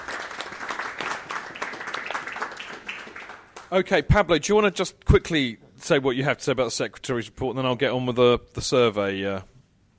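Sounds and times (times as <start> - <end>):
audience applause: 0.0 - 3.7
speech: 3.7 - 9.5.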